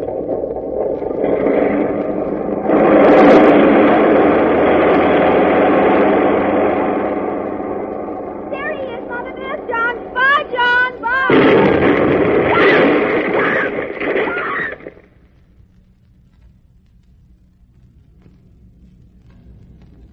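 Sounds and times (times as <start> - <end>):
airplane motors roaring at takeoff: 0.0 - 15.0
high-pitched warbling: 5.4 - 15.0.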